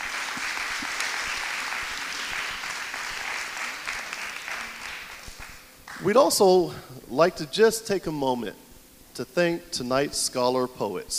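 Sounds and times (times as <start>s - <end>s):
audience applause: 0.0s - 6.0s
speech: 6.0s - 8.6s, 9.2s - 11.1s.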